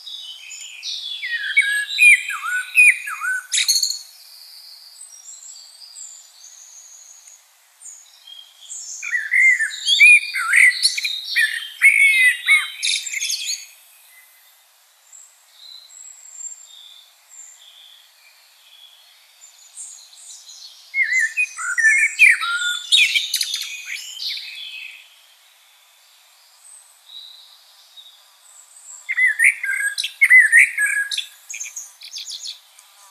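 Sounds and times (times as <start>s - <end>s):
common blackbird song: 0.0s - 7.3s, 7.9s - 14.3s, 18.7s - 25.2s, 29.0s - 32.6s.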